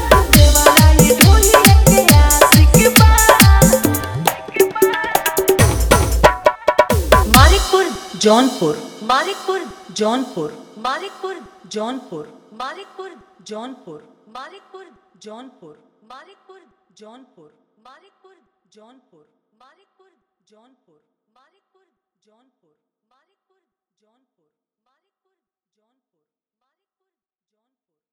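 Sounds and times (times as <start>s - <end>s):
hard dholki drumming mix: 0.0s - 11.4s.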